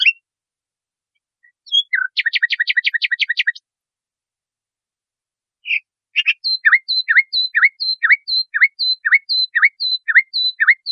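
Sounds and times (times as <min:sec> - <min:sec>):
nightingale singing: 0:00.0 - 0:00.2, 0:01.4 - 0:03.7, 0:05.6 - 0:10.9.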